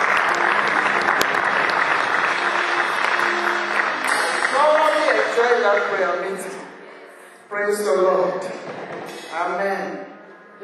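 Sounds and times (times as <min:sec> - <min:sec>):
church congregation clapping: 0:00.0 - 0:06.6
speech: 0:05.4 - 0:06.6, 0:07.5 - 0:10.6.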